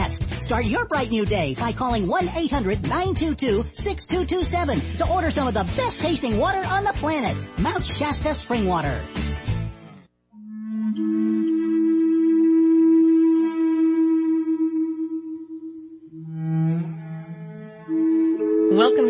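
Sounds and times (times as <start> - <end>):
speech: 0.5 - 9.5
Native American flute slow breathy melody: 10.4 - 19.0.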